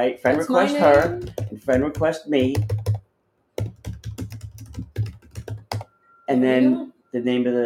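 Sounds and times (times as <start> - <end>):
speech: 0.0 - 2.9, 6.3 - 7.6
typing on a computer keyboard: 1.0 - 3.0, 3.6 - 5.9.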